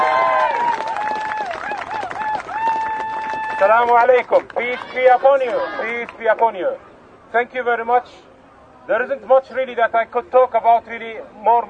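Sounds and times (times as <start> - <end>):
audience applause: 0.0 - 5.8
raised voices and cheers: 0.0 - 6.2
speech: 3.6 - 11.6.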